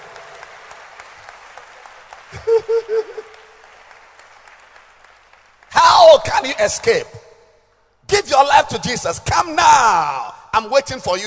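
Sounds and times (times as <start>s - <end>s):
crowd audience clapping hands: 0.0s - 7.1s
speech: 2.3s - 3.4s, 6.1s - 7.2s, 8.2s - 11.2s.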